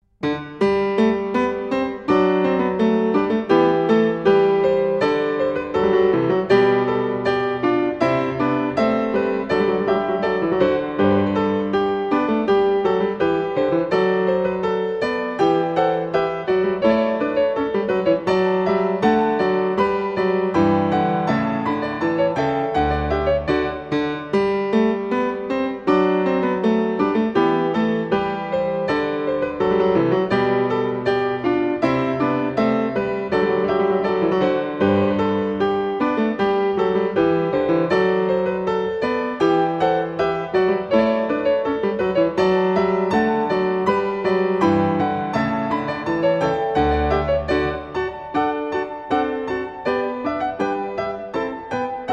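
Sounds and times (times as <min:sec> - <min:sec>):
classical variation piece: 0:00.0 - 0:52.1.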